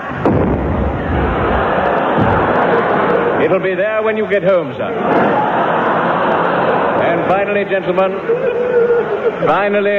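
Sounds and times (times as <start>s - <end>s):
cannon firing a shell: 0.0s - 2.6s
dense roaring rumble: 0.0s - 2.6s
laughter: 0.7s - 9.9s
speech: 3.4s - 5.8s, 7.1s - 9.9s.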